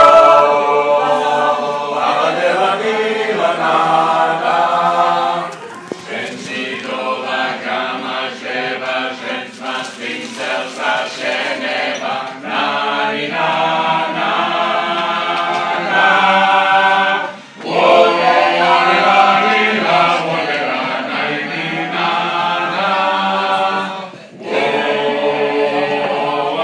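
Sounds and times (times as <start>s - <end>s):
choir singing: 0.0s - 26.6s.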